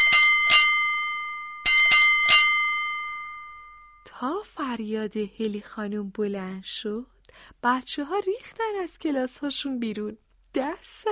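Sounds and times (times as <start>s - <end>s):
metal bell struck and ringing: 0.0s - 4.0s
speech: 4.2s - 11.1s.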